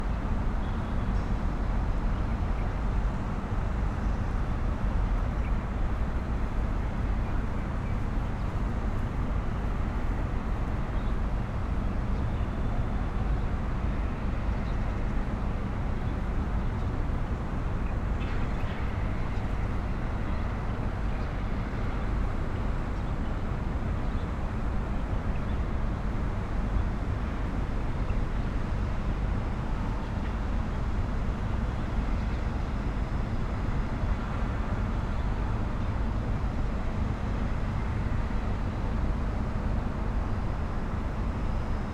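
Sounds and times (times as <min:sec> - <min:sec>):
city plaza rumble in Barsha Heights, Dubai, UAE: 0:00.0 - 0:41.9.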